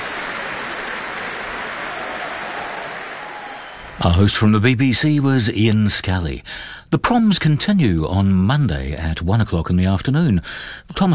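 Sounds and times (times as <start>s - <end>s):
audience applause for the orchestra: 0.0s - 4.3s
speech: 4.0s - 11.1s.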